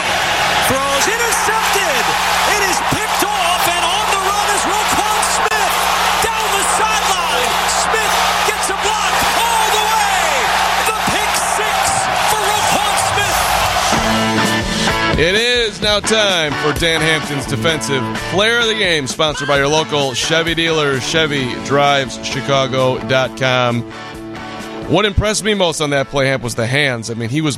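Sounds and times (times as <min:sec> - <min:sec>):
football stadium crowd making noise: 0:00.0 - 0:22.0
speech: 0:15.2 - 0:24.1, 0:24.9 - 0:27.5.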